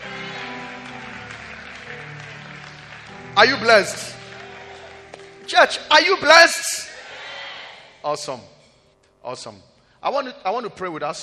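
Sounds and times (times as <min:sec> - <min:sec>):
audience clapping: 0:00.0 - 0:07.2
speech: 0:03.4 - 0:04.1, 0:05.5 - 0:06.7, 0:08.0 - 0:08.5, 0:09.2 - 0:11.2.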